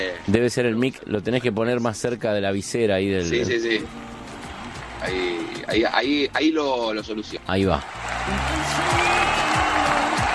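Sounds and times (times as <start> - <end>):
speech: 0.1 - 4.1, 5.0 - 8.9
audience applause for a guest musician: 7.8 - 10.3.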